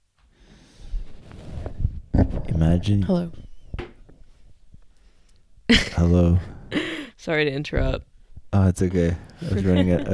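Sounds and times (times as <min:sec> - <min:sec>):
person breathing in through the nose and out through the mouth during a relaxation exercise: 0:00.3 - 0:01.2, 0:04.3 - 0:05.5, 0:06.4 - 0:07.2
speech: 0:02.5 - 0:03.4, 0:05.7 - 0:10.1
laughter: 0:09.4 - 0:10.1.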